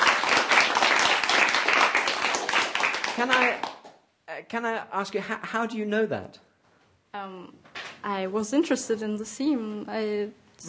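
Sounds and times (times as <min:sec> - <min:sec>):
round of applause: 0:00.0 - 0:04.0
speech: 0:03.2 - 0:03.7, 0:04.4 - 0:06.5, 0:07.1 - 0:10.6.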